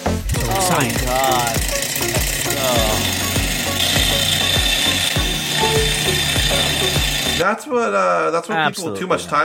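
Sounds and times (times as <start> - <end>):
Stirling engine phone charger running: 0.0 - 7.4
speech: 0.7 - 1.7, 7.4 - 9.4.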